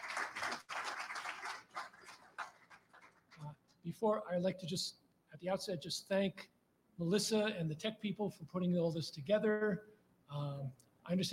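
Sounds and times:
audience applause: 0:00.0 - 0:03.5
speech: 0:03.8 - 0:11.3.

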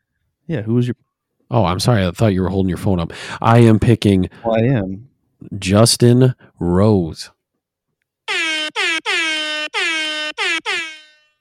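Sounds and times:
speech: 0:00.5 - 0:07.4
loud brassy horn blasts: 0:08.3 - 0:11.3.

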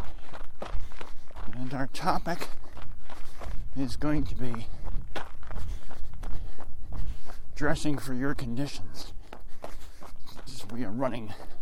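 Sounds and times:
footsteps of people on a training run: 0:00.0 - 0:11.5
speech: 0:01.7 - 0:02.6, 0:03.8 - 0:04.8, 0:07.6 - 0:09.2, 0:10.7 - 0:11.5.

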